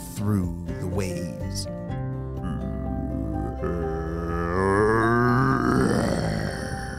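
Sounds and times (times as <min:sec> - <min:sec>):
speech: 0:00.2 - 0:01.9
deep rumbling monster growl: 0:02.4 - 0:06.9.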